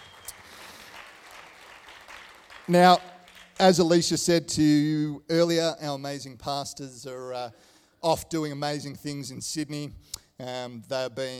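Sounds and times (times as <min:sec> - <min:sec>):
audience applause: 0:00.0 - 0:03.6
speech: 0:02.7 - 0:11.3.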